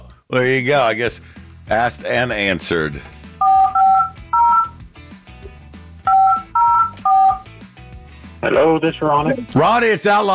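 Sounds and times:
speech: 0.3 - 3.2, 8.5 - 10.3
phone number dialing touch-tone beeps: 3.4 - 4.8, 6.1 - 7.5.

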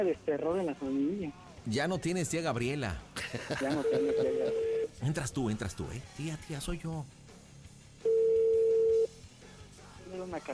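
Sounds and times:
speech: 0.0 - 7.2, 10.2 - 10.5
laughter: 3.2 - 4.8
unanswered phone call ring tone: 3.8 - 4.9, 8.0 - 9.1.

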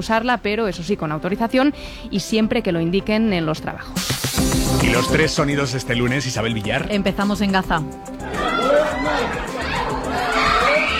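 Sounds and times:
speech: 0.0 - 8.4
family screaming and wailing after an attack: 4.6 - 5.6, 8.1 - 10.9
laughter: 4.6 - 10.9.

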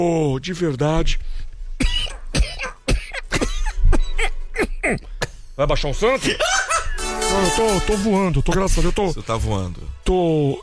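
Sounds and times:
speech: 0.0 - 2.0, 4.9 - 6.6, 7.3 - 10.6
cough: 1.8 - 5.4.

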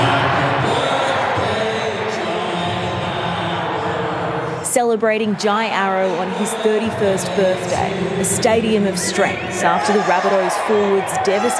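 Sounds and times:
stadium crowd of thousands roaring birthday wishes: 0.0 - 11.5
speech: 4.8 - 11.5.

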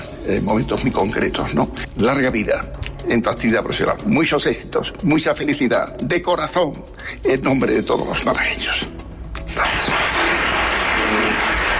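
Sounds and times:
speech: 0.2 - 9.0
long intense applause at a ceremony in Málaga: 9.5 - 11.7.

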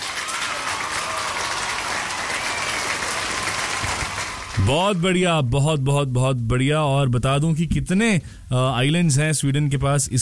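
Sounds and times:
crowd applause: 0.0 - 5.0
speech: 4.6 - 10.1.

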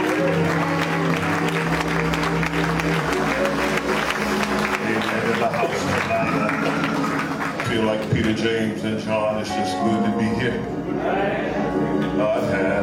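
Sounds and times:
audience hand clapping: 0.0 - 8.4
speech: 8.4 - 12.8.

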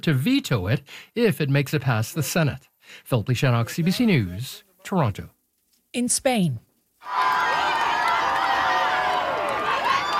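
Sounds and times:
speech: 0.0 - 7.4
thousands lining Madrid streets cheering to welcome Pope Leo: 7.0 - 10.1.

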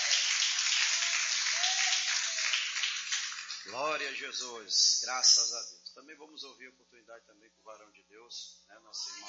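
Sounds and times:
church audience clapping: 0.0 - 4.0
speech: 3.7 - 9.2.

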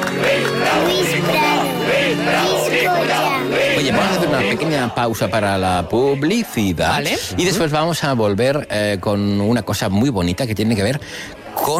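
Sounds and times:
loud crowd shouting and chanting a name: 0.0 - 7.6
speech: 4.3 - 11.7.

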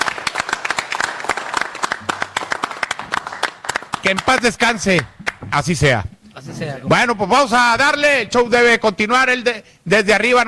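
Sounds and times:
applause: 0.0 - 5.4
speech: 4.0 - 10.4.

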